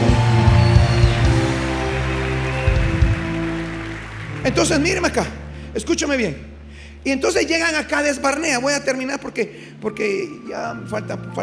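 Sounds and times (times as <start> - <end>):
audience applause: 0.0 - 5.4
speech: 4.4 - 11.4.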